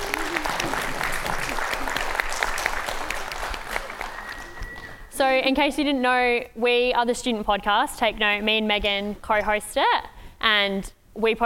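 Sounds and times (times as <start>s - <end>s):
audience applause for panelists: 0.0s - 5.1s
speech: 5.2s - 11.4s.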